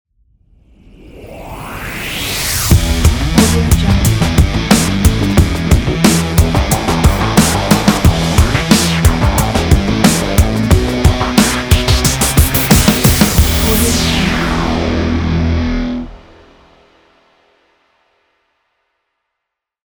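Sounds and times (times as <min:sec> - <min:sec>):
action rock trailer intro music: 0:02.6 - 0:17.2.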